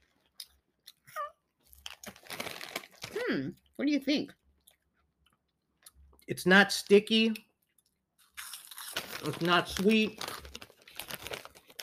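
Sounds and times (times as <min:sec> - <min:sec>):
barbecue-flavored cheese puffs being crunched: 0:01.6 - 0:03.2, 0:08.2 - 0:11.8
speech: 0:03.3 - 0:04.4, 0:06.3 - 0:07.5, 0:09.2 - 0:10.3.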